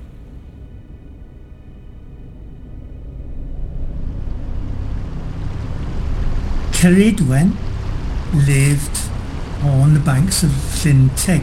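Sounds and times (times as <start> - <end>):
sailing boat moving on the water: 3.8 - 11.4
speech: 6.8 - 7.6, 8.3 - 11.4.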